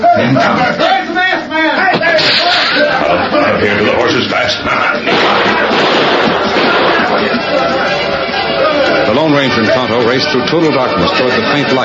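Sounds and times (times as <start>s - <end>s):
men yelling angrily: 0.0s - 10.2s
speech: 0.2s - 1.0s, 9.3s - 11.8s
gunshots fired blindly: 5.0s - 7.4s.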